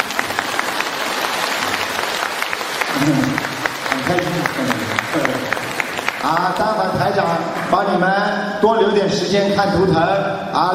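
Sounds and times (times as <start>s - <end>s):
audience applause: 0.0s - 7.8s
speech: 3.0s - 3.5s, 4.1s - 5.6s, 6.2s - 10.7s.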